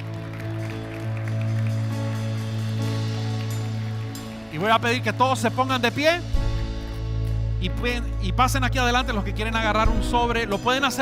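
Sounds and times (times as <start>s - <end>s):
audience clapping: 0.0s - 6.0s
sustained low keyboard chord: 0.0s - 10.9s
speech: 4.6s - 6.4s, 7.6s - 10.9s.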